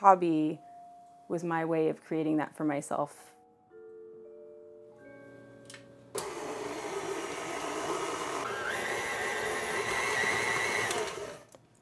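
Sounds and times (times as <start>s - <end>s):
speech: 0.0s - 0.7s, 1.3s - 3.3s
stand mixer motor whirring while kneading dough: 6.2s - 11.5s.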